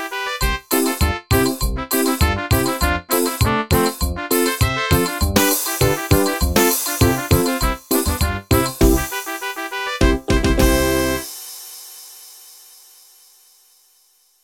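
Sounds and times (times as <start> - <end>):
cumbia music: 0.0 - 11.4.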